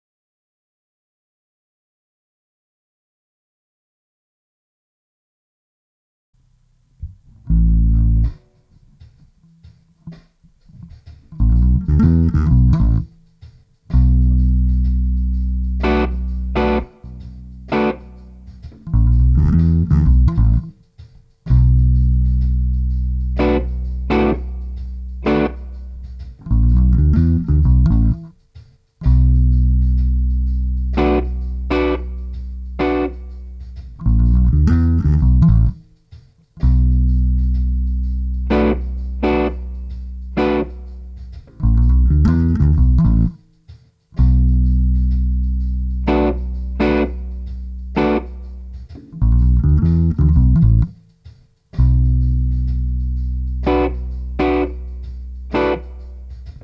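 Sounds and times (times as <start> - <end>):
bass loops: 7.0 - 8.4, 10.8 - 13.2, 13.9 - 20.8, 21.5 - 28.4, 29.0 - 35.9, 36.6 - 43.4, 44.2 - 51.0, 51.8 - 56.6.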